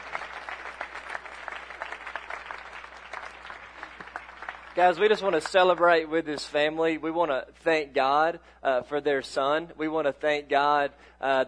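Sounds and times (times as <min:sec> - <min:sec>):
church congregation applauding an adoptive family: 0:00.0 - 0:06.0
speech: 0:04.8 - 0:11.4.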